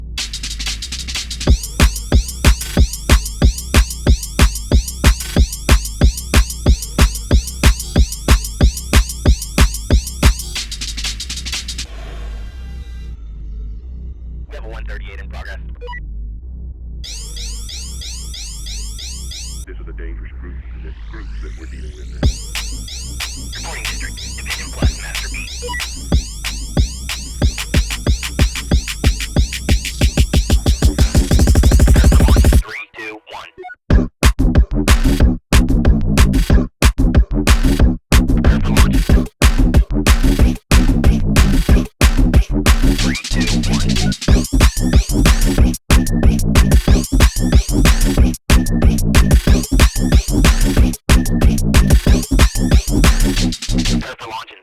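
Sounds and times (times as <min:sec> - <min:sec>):
tabata workout music: 0:00.2 - 0:11.9, 0:22.2 - 0:32.6, 0:33.9 - 0:53.8.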